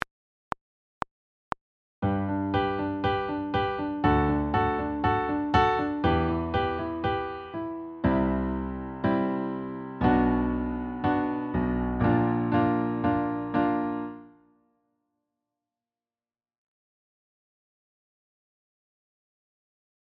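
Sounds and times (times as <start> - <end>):
piano: 2.0 - 14.5.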